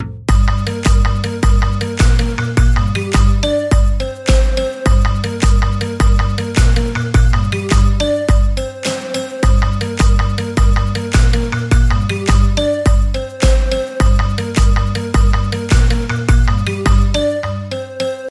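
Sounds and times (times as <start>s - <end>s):
dance music: 0.0s - 18.2s.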